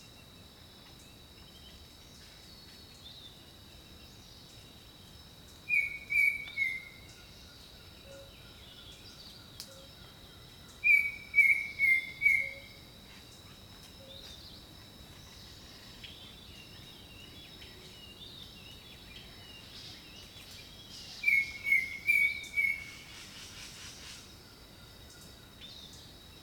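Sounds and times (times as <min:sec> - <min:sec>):
bird song of whistled notes: 0:05.7 - 0:07.2, 0:10.8 - 0:12.8, 0:20.5 - 0:24.2.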